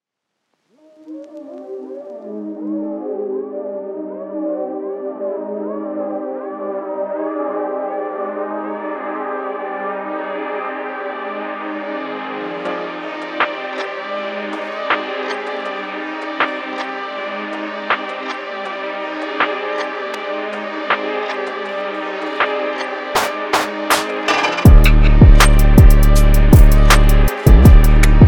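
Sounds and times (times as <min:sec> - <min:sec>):
trap beat: 0:19.2 - 0:28.2.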